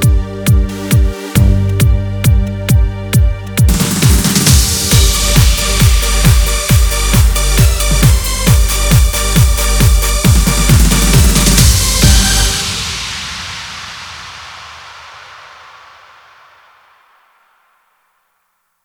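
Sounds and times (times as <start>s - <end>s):
Genos keyboard remix: 0.0s - 12.8s.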